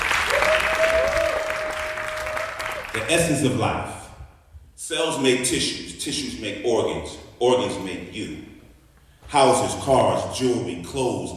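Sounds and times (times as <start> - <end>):
audience applause for a poet coming on stage: 0.0 - 3.1
speech: 3.0 - 4.0, 4.8 - 8.5, 9.3 - 11.3.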